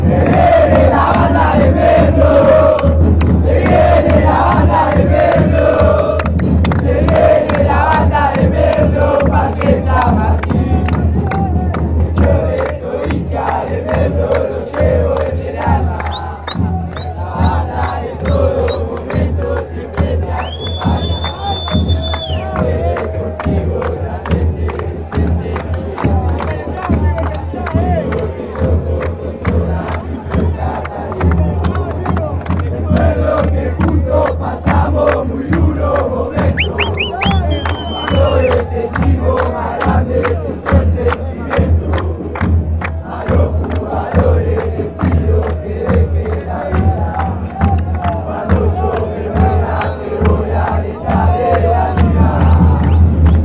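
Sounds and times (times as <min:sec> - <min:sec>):
chant: 0:00.0 - 0:53.4.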